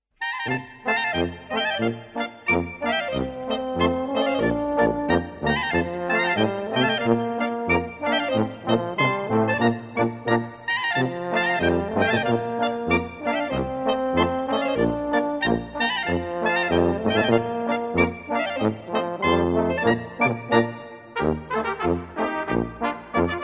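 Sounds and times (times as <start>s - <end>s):
polka band playing: 0.3s - 23.4s.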